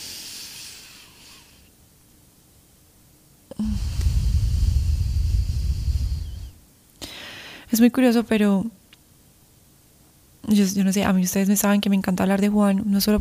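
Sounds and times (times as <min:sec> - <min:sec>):
deep breath inflating the stomach: 0:00.0 - 0:01.7, 0:03.5 - 0:07.7
soft airy hiss: 0:00.0 - 0:11.6
speech: 0:07.7 - 0:08.8, 0:10.5 - 0:13.2.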